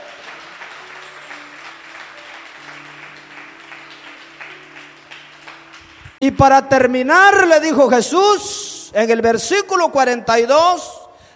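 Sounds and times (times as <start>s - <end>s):
audience applauding: 0.0s - 6.2s
speech: 6.2s - 10.9s.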